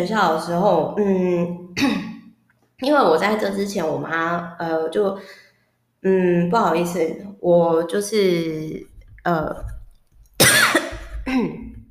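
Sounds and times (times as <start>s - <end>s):
speech: 0.0s - 2.0s, 2.8s - 5.4s, 6.0s - 9.7s, 11.3s - 11.6s
person coughing after choking on water: 1.8s - 2.2s, 10.4s - 11.8s.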